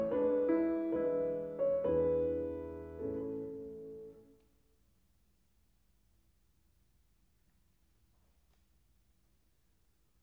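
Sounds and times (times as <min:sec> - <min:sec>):
piano piece in A major: 0:00.0 - 0:04.4.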